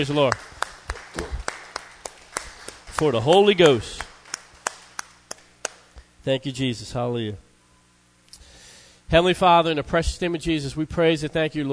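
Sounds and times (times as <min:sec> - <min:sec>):
speech: 0:00.0 - 0:00.5, 0:01.2 - 0:01.4, 0:03.0 - 0:04.1, 0:06.2 - 0:07.4, 0:09.1 - 0:11.7
audience clapping in unison: 0:00.0 - 0:06.0.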